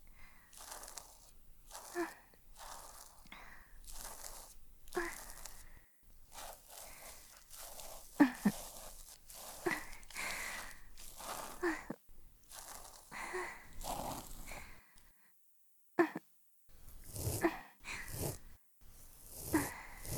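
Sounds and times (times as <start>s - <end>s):
breathing: 0.0s - 1.0s, 1.7s - 8.6s, 9.5s - 11.9s, 12.9s - 15.4s, 17.0s - 20.1s
ear cleaning sound effects: 0.0s - 14.8s, 16.8s - 20.1s.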